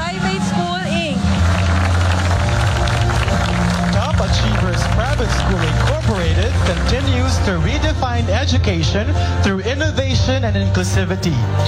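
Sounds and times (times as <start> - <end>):
audience round of applause: 0.0 - 8.6
speech: 6.7 - 11.6.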